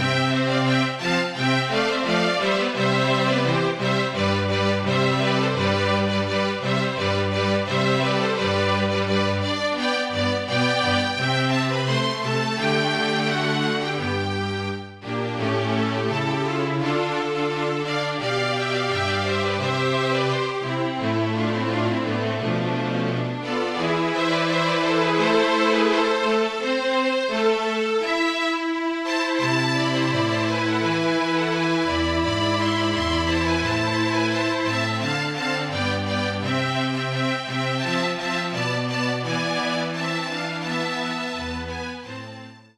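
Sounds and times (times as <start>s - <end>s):
trumpet piece: 0.0s - 42.7s.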